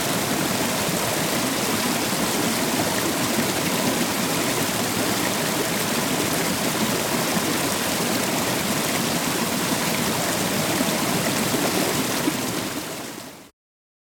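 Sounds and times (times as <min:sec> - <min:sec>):
small waterfall: 0:00.0 - 0:13.5.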